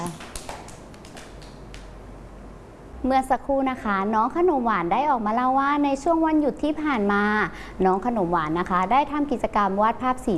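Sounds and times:
children clapping: 0.0 - 1.9
speech: 3.0 - 10.3.

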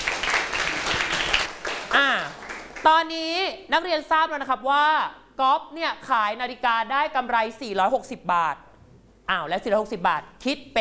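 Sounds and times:
classroom students applauding a classmate: 0.0 - 2.9
speech: 2.8 - 8.7, 9.3 - 10.8.

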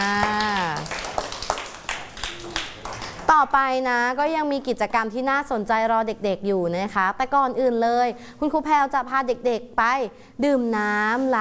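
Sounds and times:
children clapping hands for a classmate: 0.0 - 3.3
speech: 3.4 - 11.3.

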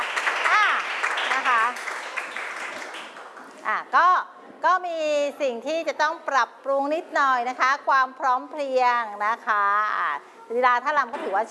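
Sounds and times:
people cheering: 0.0 - 3.0
audience applause: 0.0 - 3.5
speech: 3.9 - 11.5.

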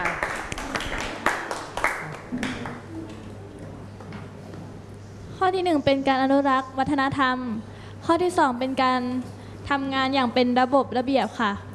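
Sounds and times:
classroom applause: 0.0 - 2.9
speech: 5.5 - 11.7.

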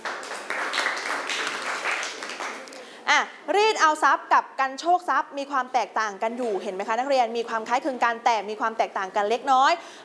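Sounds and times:
group of students clapping: 0.0 - 2.9
speech: 3.2 - 10.0.

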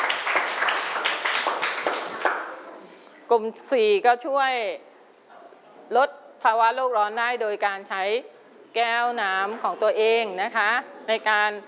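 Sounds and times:
classroom clapping for group four: 0.0 - 2.7
speech: 3.3 - 4.9, 5.9 - 11.6.

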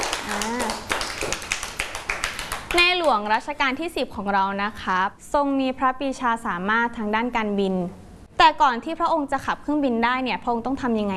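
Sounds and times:
children clapping during a classroom lesson: 0.0 - 3.2
speech: 3.1 - 11.1.

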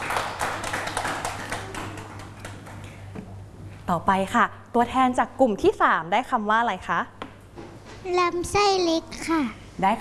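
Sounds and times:
classroom clapping: 0.0 - 2.9
speech: 3.9 - 7.2, 8.0 - 10.0.

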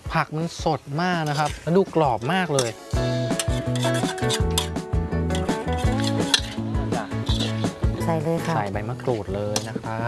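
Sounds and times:
speech: 0.2 - 5.5, 8.2 - 10.0
crab being dry-roasted in a pan: 1.2 - 7.9.

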